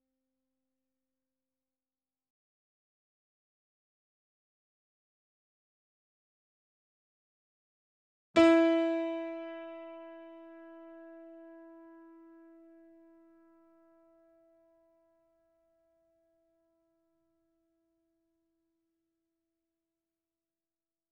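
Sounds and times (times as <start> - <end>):
C4 E4 A4 notes on grand piano and digital piano: 8.4 - 13.1.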